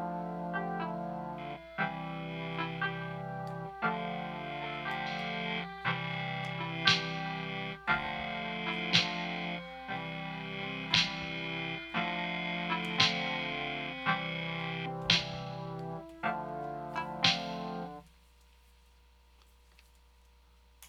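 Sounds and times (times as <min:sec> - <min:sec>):
lo-fi beats: 0:00.0 - 0:18.0.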